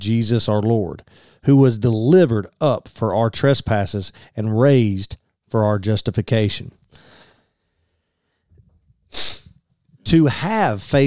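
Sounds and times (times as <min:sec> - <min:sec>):
speech: 0:00.0 - 0:07.2, 0:09.1 - 0:09.4, 0:10.1 - 0:11.0
stifled sneeze: 0:09.1 - 0:09.6.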